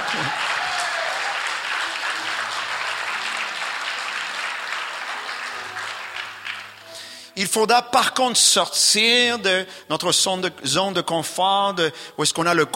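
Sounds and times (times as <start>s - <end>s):
audience applauding: 0.0s - 7.1s
speech: 0.2s - 0.5s, 7.4s - 12.7s.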